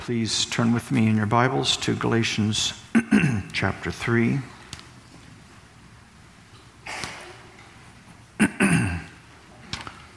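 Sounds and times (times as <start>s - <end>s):
speech: 0.0s - 2.8s, 3.6s - 4.6s
preacher clearing his throat during a church service: 2.9s - 3.6s, 8.4s - 9.2s.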